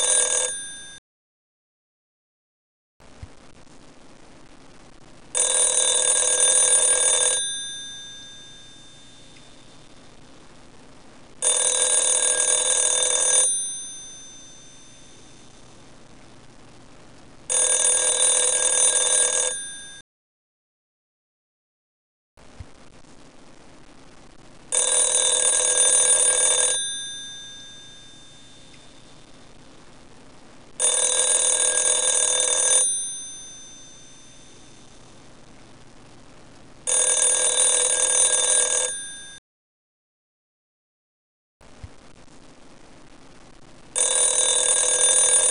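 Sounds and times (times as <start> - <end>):
telephone ringing: 0.0 - 1.0, 5.4 - 9.9, 11.4 - 15.7, 17.5 - 20.0, 24.7 - 29.3, 30.8 - 35.0, 36.9 - 39.4, 44.0 - 45.4.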